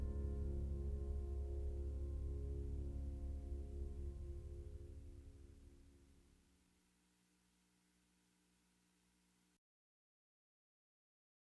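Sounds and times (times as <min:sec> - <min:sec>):
pianist playing jazz: 0:00.0 - 0:05.6.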